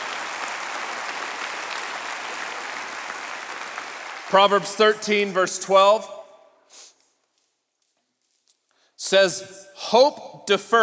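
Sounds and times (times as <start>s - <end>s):
audience applause: 0.0s - 4.9s
speech: 4.3s - 6.2s, 9.1s - 10.8s.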